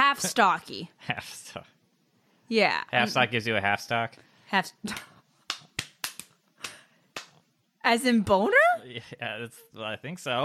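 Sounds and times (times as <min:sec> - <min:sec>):
speech: 0:00.2 - 0:01.7, 0:02.5 - 0:05.1, 0:07.8 - 0:10.4
hand claps: 0:04.9 - 0:07.4.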